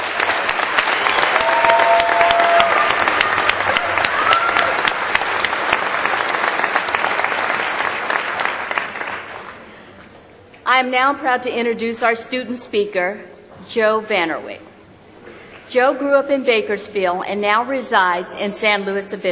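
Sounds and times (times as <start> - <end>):
audience applause: 0.0 - 9.7
speech: 10.8 - 14.7, 15.7 - 19.3.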